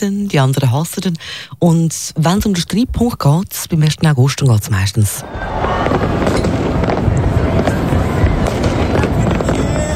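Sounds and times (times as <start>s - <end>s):
speech: 0.0s - 6.6s
fireworks exploding: 5.2s - 9.9s.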